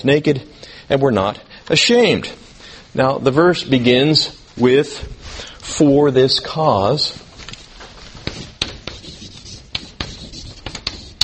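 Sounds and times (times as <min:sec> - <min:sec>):
speech: 0:00.0 - 0:07.2
writing on a board: 0:08.2 - 0:11.2.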